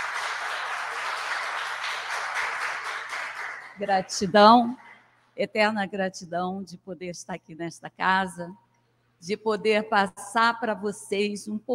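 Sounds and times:
audience applause: 0.0 - 3.8
speech: 3.8 - 4.8, 5.4 - 8.6, 9.2 - 11.7.

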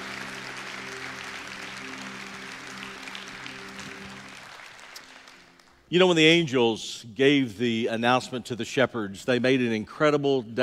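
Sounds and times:
audience applauding the choir: 0.0 - 5.9
speech: 5.9 - 10.6.

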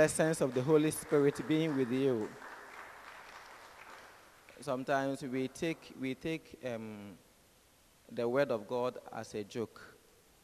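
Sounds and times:
speech: 0.0 - 2.5, 4.6 - 7.2, 8.1 - 9.9
audience clapping hands: 0.0 - 4.9.

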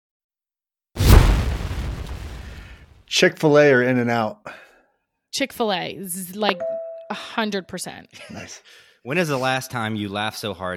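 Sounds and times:
bomb explosion sound effect: 1.0 - 3.0
speech: 3.1 - 4.6, 5.3 - 10.7.

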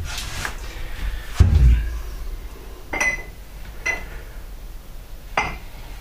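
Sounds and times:
low thud: 1.3 - 2.0
glasses and cups knocking and clinking: 2.9 - 4.1, 5.4 - 5.6.

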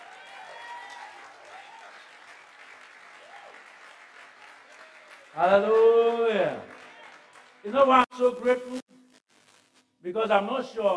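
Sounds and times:
audience clapping: 0.0 - 8.1
speech: 5.4 - 6.7, 7.6 - 8.8, 10.1 - 10.9.

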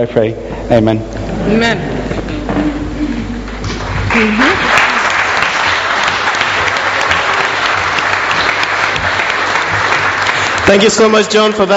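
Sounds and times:
speech: 0.0 - 2.0, 2.6 - 2.8, 4.1 - 4.6, 10.7 - 11.7
audience applause: 3.4 - 11.7.

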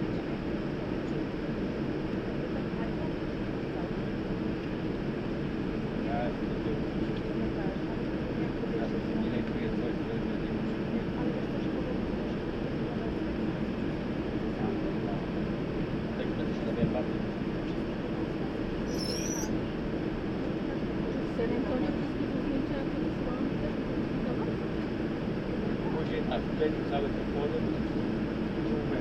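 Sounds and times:
airplane engine rumble waiting for departure at San Antonio: 0.0 - 28.9
faint murmur of voices: 0.0 - 28.9
brief high chirp: 18.9 - 19.5.

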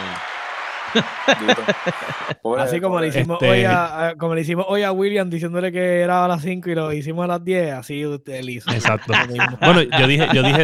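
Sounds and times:
applause: 0.0 - 2.4, 8.8 - 10.6
laughter: 0.8 - 3.9, 8.7 - 10.6
speech: 0.9 - 10.6.

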